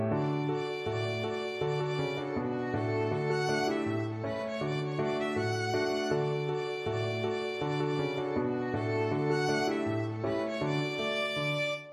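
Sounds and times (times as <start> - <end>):
violin: 0.1 - 11.9.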